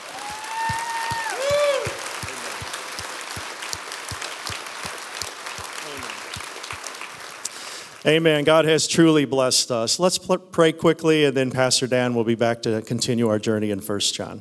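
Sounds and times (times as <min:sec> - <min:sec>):
audience round of applause: 0:00.0 - 0:08.1
speech: 0:08.0 - 0:14.4.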